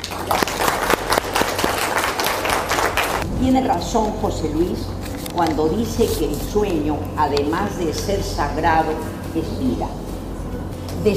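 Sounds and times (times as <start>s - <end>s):
audience applause: 0.0s - 3.2s
speech: 3.4s - 10.0s.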